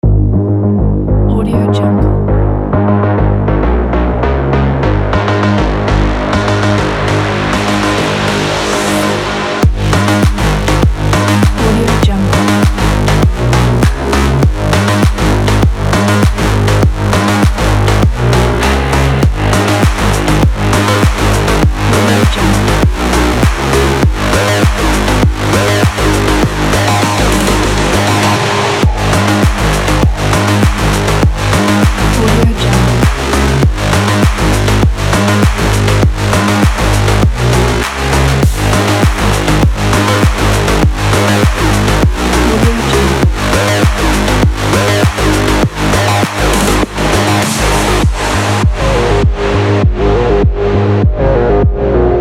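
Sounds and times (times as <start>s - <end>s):
sport techno music: 1.0s - 52.1s.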